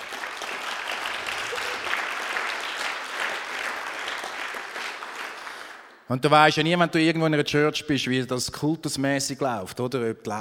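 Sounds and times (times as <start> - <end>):
audience applause: 0.0 - 6.0
speech: 6.1 - 10.3.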